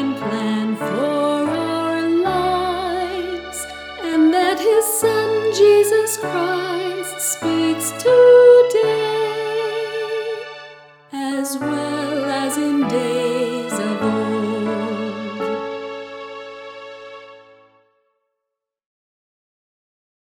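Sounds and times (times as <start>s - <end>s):
vocals: 0.0s - 16.0s.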